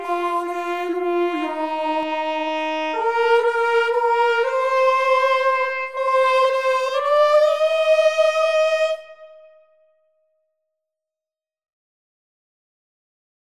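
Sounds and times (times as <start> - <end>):
soprano voice: 0.0 - 9.0.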